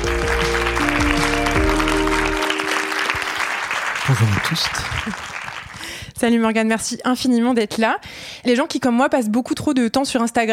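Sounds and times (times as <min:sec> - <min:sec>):
low sustained musical chord: 0:00.0 - 0:04.0
audience applause: 0:00.0 - 0:06.0
speech: 0:04.1 - 0:05.3, 0:06.2 - 0:10.5.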